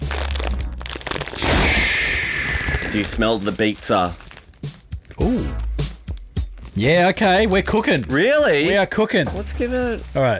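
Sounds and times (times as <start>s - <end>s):
steady packaging rustle: 0.0s - 1.5s, 2.4s - 5.2s, 6.3s - 10.3s
box of Shapes crackers being cracked open: 0.0s - 5.2s
packaging crackling and crinkling: 0.0s - 5.2s, 6.4s - 9.0s
speech: 2.9s - 4.2s, 6.8s - 10.3s.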